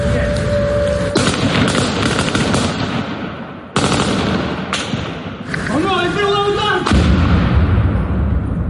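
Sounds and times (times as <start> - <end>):
voices shouting: 0.0 - 1.3
FPV drone blast hitting a parked car: 0.0 - 5.4, 6.8 - 8.6
rapid gunfire-like cracks: 1.1 - 5.6, 6.8 - 7.9.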